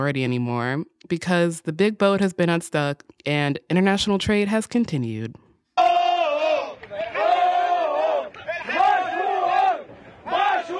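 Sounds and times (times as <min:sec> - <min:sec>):
speech: 0:00.0 - 0:05.9
tugboat crew cheering and shouting: 0:05.8 - 0:10.7.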